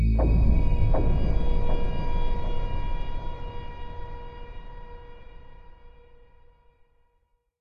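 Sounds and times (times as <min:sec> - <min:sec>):
progress stinger: 0:00.1 - 0:06.8.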